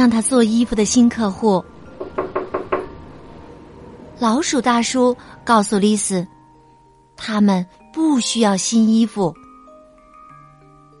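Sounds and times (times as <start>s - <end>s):
speech: 0.0s - 1.7s, 4.2s - 6.4s, 7.2s - 9.4s
knocking on a door: 2.0s - 3.0s.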